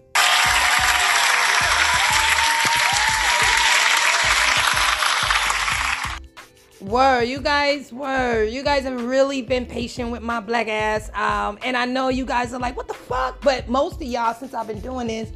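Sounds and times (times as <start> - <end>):
round of applause: 0.0 - 6.2
speech: 6.9 - 15.3.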